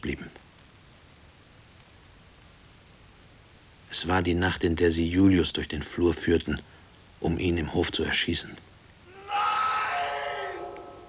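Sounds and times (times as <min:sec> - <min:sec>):
speech: 0:00.0 - 0:00.4, 0:04.0 - 0:08.7
man screaming: 0:09.1 - 0:11.0.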